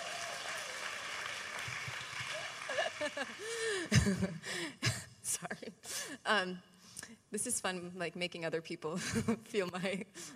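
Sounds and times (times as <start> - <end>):
cheers and whoops: 0.0 - 3.4
crowd clapping: 0.0 - 4.2
laughter: 2.3 - 4.4
speech: 3.1 - 10.3.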